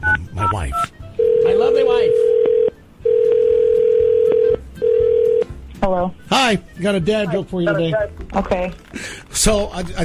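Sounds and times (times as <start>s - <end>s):
speech: 0.5s - 0.9s, 6.0s - 10.0s
telephone call ringing: 1.2s - 5.5s.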